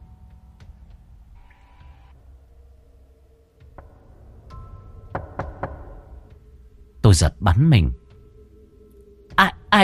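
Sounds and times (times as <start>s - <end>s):
sharp knocking on a door: 5.1s - 6.2s
speech: 7.1s - 8.0s, 9.4s - 9.8s.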